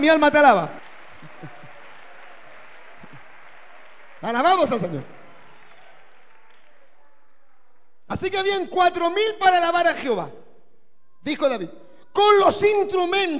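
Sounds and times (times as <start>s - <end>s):
speech: 0.0s - 1.6s, 4.2s - 5.2s, 8.1s - 10.4s, 11.2s - 13.3s
audience applause: 0.0s - 7.8s.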